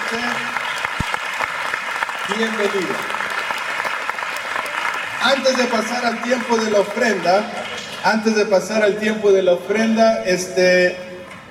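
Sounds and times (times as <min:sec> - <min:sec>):
audience applauding visitors: 0:00.0 - 0:08.8
speech: 0:00.1 - 0:00.6, 0:02.3 - 0:03.2, 0:05.2 - 0:11.0.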